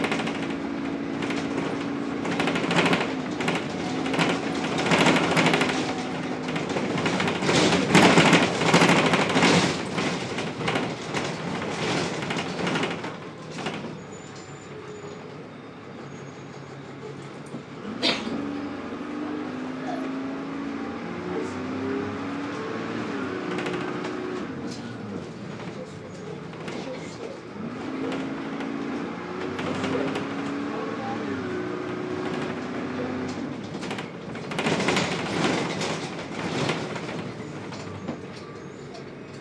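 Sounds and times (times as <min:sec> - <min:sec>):
bus windows rattling: 0:00.0 - 0:14.0, 0:22.2 - 0:30.9, 0:31.5 - 0:39.4
shoogly bus noise: 0:00.0 - 0:39.4.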